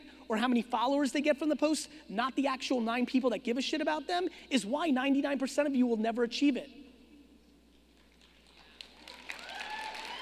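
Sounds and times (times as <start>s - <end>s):
speech: 0.3s - 6.8s
audience clapping: 8.0s - 10.2s.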